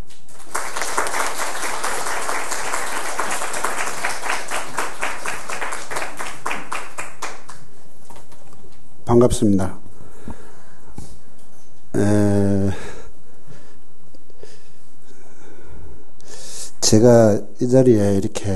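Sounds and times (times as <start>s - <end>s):
audience applause welcoming speaker: 0.3s - 7.7s
speech: 9.1s - 9.8s, 16.9s - 18.5s.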